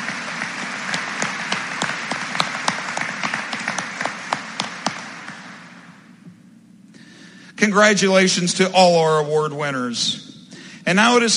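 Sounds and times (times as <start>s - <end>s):
audience applause for perfect attendance: 0.0s - 6.1s
speech: 7.6s - 10.3s, 10.9s - 11.3s.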